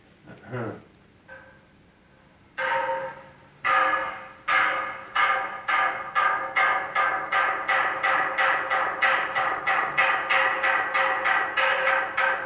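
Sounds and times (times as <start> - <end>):
wooden semantron struck at Mount Athos: 2.6 - 12.4.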